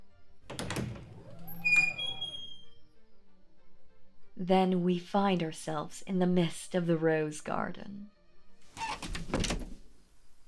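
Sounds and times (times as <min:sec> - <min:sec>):
secret door behind a pillar being pushed open: 0:00.5 - 0:02.4
speech: 0:04.4 - 0:08.2.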